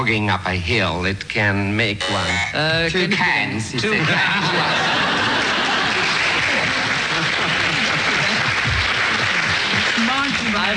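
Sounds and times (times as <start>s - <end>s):
speech: 0.0s - 5.5s
laughter: 3.1s - 10.1s
studio audience applause: 4.6s - 10.7s.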